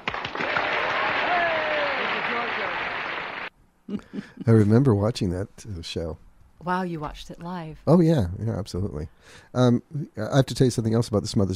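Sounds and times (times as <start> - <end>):
applause clapping: 0.0 - 3.5
speech: 3.9 - 11.5.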